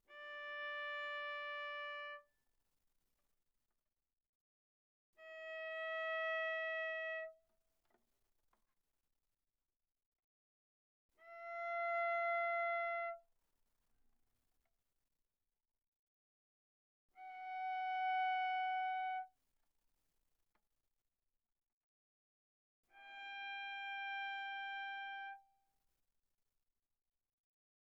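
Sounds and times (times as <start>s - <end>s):
viola bowed arco on the G string: 0.1s - 2.3s, 5.2s - 7.4s, 11.2s - 13.2s, 17.2s - 19.3s, 22.9s - 25.5s.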